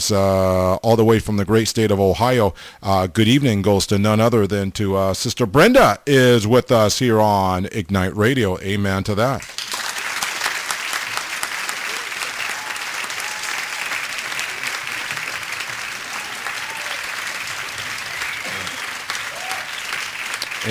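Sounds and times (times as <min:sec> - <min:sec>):
speech: 0:00.0 - 0:09.7
applause: 0:09.4 - 0:20.6.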